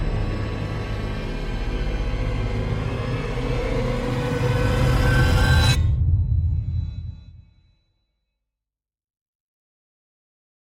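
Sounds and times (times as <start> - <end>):
thrilling trailer riser: 0.0 - 7.8.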